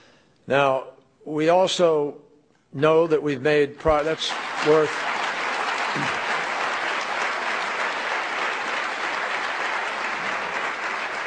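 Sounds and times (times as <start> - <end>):
speech: 0.5 - 5.1
audience applause at a political speech: 3.9 - 11.2.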